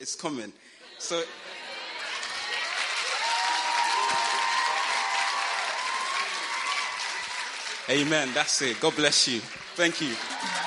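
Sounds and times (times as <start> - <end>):
speech: 0.0 - 1.6, 7.9 - 10.4
audience applause: 1.6 - 10.6
faint cheering: 2.3 - 7.7, 9.8 - 10.6.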